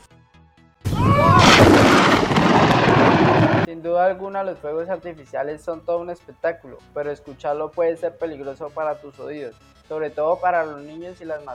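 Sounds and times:
thunder: 0.9 - 3.7
speech: 4.1 - 11.5.

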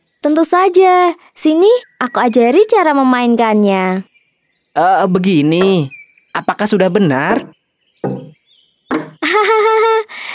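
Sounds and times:
speech: 0.2 - 4.1, 4.8 - 8.2
wooden pestle pounding in rice mortar: 7.4 - 9.2.

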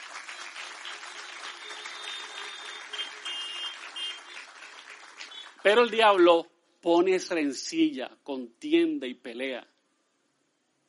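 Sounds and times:
audience applause: 0.0 - 5.8
speech: 5.6 - 9.7.

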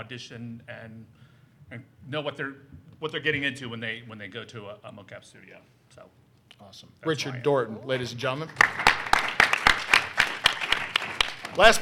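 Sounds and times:
speech: 0.0 - 9.1, 11.6 - 11.8
hands clapping for speaker introduction: 8.5 - 11.8.

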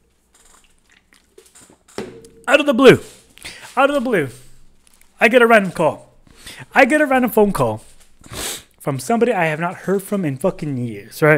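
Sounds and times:
sipping and swallowing a drink: 0.3 - 2.4
glass being set down: 2.0 - 2.5
speech: 2.5 - 3.2, 3.8 - 4.4, 5.2 - 6.1, 6.7 - 11.3.

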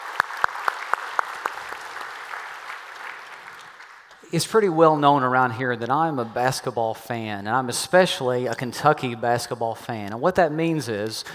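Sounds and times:
church congregation clapping hands: 0.0 - 4.3
speech: 4.3 - 11.3.

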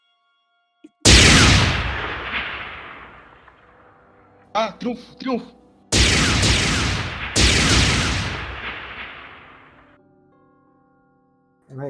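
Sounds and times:
spaceship exploding when hit by a shot in a video game: 1.1 - 3.7, 6.0 - 9.9
speech: 4.6 - 5.6.

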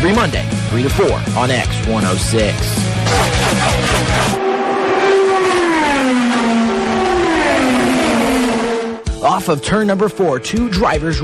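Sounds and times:
speech: 0.0 - 4.5, 9.2 - 11.2
race car engines accelerating on a track: 2.9 - 9.1.

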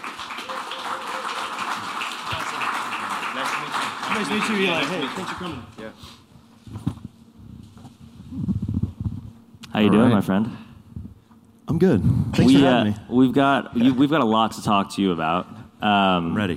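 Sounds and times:
round of applause: 0.0 - 5.8
speech: 4.2 - 6.2, 9.8 - 10.6, 11.7 - 16.5.

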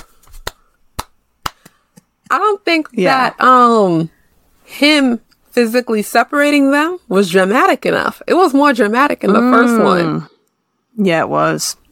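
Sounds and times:
hands patting together rhythmically: 0.0 - 2.4
speech: 2.3 - 10.3, 11.0 - 11.8.

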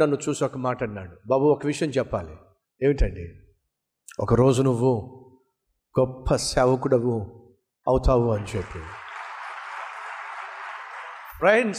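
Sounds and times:
speech: 0.0 - 3.4, 4.2 - 5.2, 6.0 - 9.0, 11.4 - 11.7
audience applause at a church gathering: 8.3 - 11.7.

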